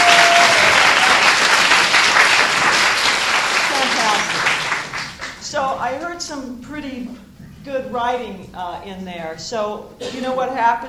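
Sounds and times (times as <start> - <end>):
audience applause: 0.0 - 5.4
speech: 7.9 - 10.8.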